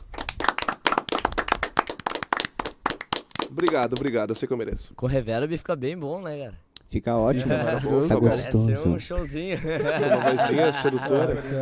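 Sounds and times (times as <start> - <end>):
small group clapping: 0.0 - 4.5
speech: 3.5 - 11.6
laughter: 7.3 - 8.5, 9.2 - 11.6.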